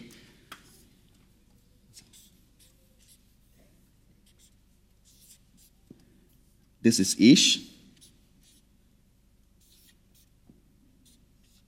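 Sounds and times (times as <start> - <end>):
words being written on a board: 0.0 - 1.0, 1.9 - 5.8, 8.0 - 8.7, 9.6 - 10.4, 11.0 - 11.6
speech: 6.8 - 7.8.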